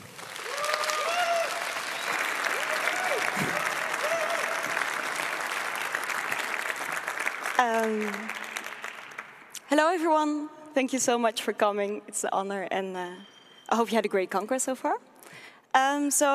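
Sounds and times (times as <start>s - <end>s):
warm audience applause: 0.0s - 9.6s
speech: 7.6s - 8.3s, 9.7s - 15.1s, 15.7s - 16.3s.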